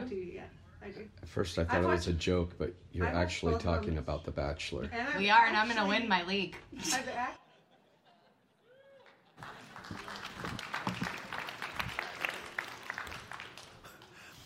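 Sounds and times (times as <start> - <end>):
speech: 0.5 - 7.4
laughter: 6.8 - 11.4
audience applause: 9.0 - 14.4.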